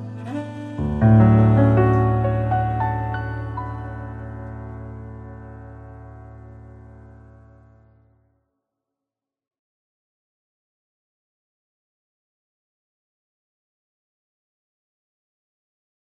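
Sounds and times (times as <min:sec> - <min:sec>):
two violins and piano playing: 0:00.0 - 0:06.6.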